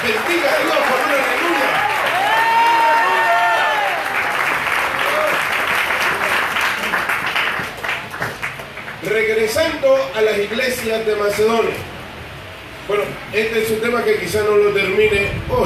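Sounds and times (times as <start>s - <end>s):
crowd cheering and shouting: 0.0s - 6.3s
audience applause: 0.0s - 9.1s
speech: 9.4s - 11.9s, 12.9s - 15.6s.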